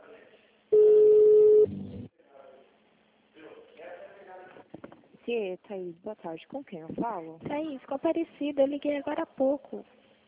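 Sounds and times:
telephone beep as a call is transferred to an agent: 0.8 - 1.8
speech: 5.3 - 10.0.

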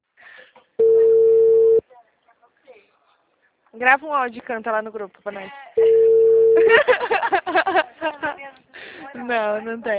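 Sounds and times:
phone call ringing tone: 0.8 - 1.8, 5.8 - 6.7
speech: 3.8 - 5.9, 6.6 - 9.9
laughter: 5.9 - 8.5.

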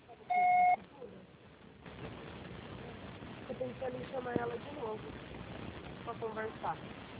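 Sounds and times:
voicemail beep: 0.3 - 0.8
speech: 3.6 - 5.5, 6.1 - 7.1.

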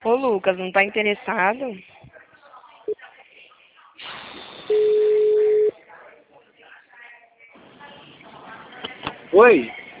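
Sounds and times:
speech: 0.1 - 2.1, 9.3 - 9.8
short telephone line beep after a dropped call: 4.7 - 5.7
steady mid-pitched telephone line tone after a dropped call: 4.7 - 5.7.

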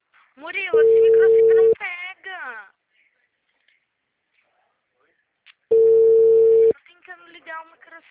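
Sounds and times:
speech: 0.4 - 1.4, 7.6 - 8.0
telephone line ringing tone on an unanswered call: 0.8 - 1.8, 5.7 - 6.7.

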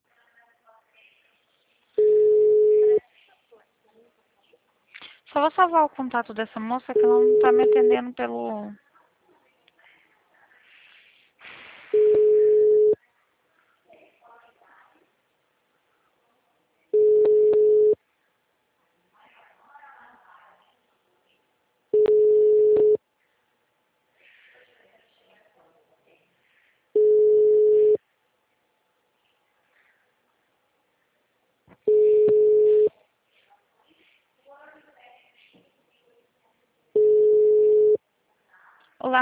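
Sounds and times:
telephone busy signal on an engaged number: 2.0 - 3.0, 7.0 - 8.0, 12.0 - 13.0, 17.0 - 18.0, 22.0 - 23.0, 27.0 - 28.0, 31.9 - 32.9, 37.0 - 38.0
speech: 5.4 - 8.8.

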